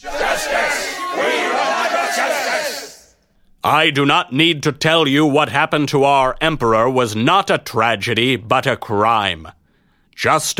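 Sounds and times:
army growling in anger: 0:00.0 - 0:03.1
harsh shouts from an army: 0:00.0 - 0:03.2
speech: 0:03.7 - 0:09.6, 0:10.2 - 0:10.5.

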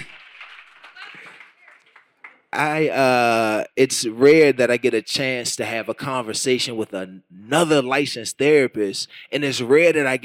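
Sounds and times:
audience clapping: 0:00.0 - 0:02.8
speech: 0:02.5 - 0:10.2.

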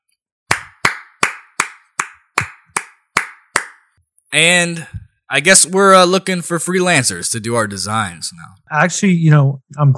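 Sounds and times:
hand clapping: 0:00.5 - 0:03.9
speech: 0:04.3 - 0:09.9.

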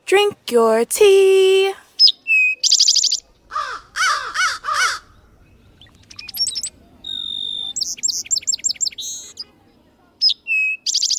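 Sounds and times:
speech: 0:00.1 - 0:01.8
birds singing whistled phrases and trills: 0:02.0 - 0:11.1
faint low rumble: 0:03.2 - 0:10.2.

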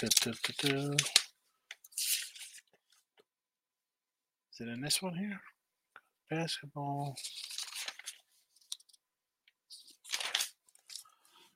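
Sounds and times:
speech: 0:00.0 - 0:01.2, 0:04.6 - 0:05.5, 0:06.3 - 0:07.5
paper folders being rummaged through: 0:00.0 - 0:03.0, 0:07.1 - 0:09.0, 0:09.7 - 0:11.4.

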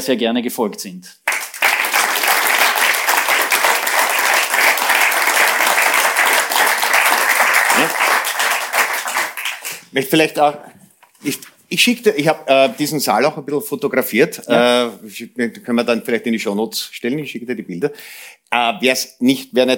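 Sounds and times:
speech: 0:00.0 - 0:01.3, 0:07.8 - 0:08.0, 0:10.0 - 0:19.7
audience applause in a cinema hall: 0:01.2 - 0:09.8.

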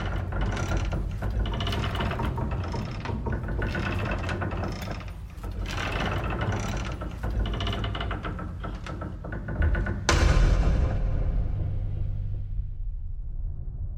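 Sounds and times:
creaking, clanking woodshed-like noises in music: 0:00.0 - 0:12.6
low droning rumble: 0:00.0 - 0:13.9
loud crash: 0:10.1 - 0:13.9.

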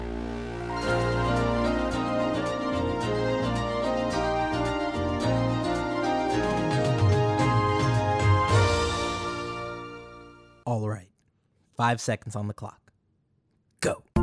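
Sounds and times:
VHS home video opening orchestral fanfare: 0:00.0 - 0:10.5
speech: 0:11.8 - 0:12.8, 0:13.8 - 0:14.1.

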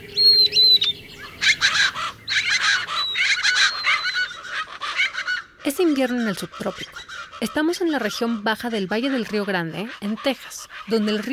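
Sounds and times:
thin high whistled bird notes: 0:00.0 - 0:04.4
winter bird chorus in lower Rio Grande Valley: 0:00.0 - 0:11.3
harsh bird chattering and squawking: 0:01.2 - 0:11.3
speech: 0:05.7 - 0:11.3.

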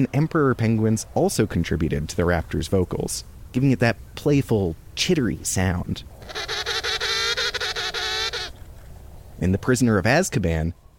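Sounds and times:
speech: 0:00.0 - 0:06.4, 0:09.4 - 0:10.8
angry goose honking: 0:06.2 - 0:08.6.

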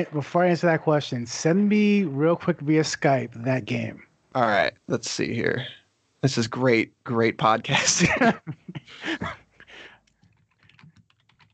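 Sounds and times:
speech: 0:00.0 - 0:09.4
laughter: 0:07.4 - 0:09.4
mechanical keyboard typing: 0:10.2 - 0:11.5.

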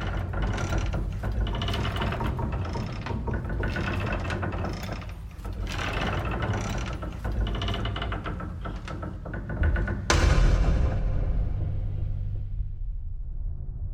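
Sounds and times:
rhythmic creaking and clanking woodshed noises: 0:00.0 - 0:12.4
heavy booming hit: 0:09.6 - 0:13.9.

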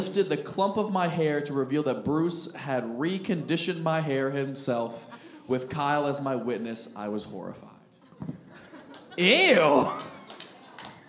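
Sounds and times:
speech: 0:00.0 - 0:08.3, 0:09.2 - 0:10.1
laughter: 0:08.0 - 0:11.0
a little crowd applause: 0:08.9 - 0:11.0.

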